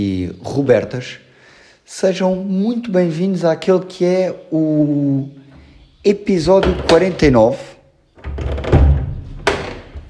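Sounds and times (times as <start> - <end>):
speech: 0.0 - 1.2, 1.9 - 5.4, 6.0 - 7.7
door closing: 5.5 - 10.0.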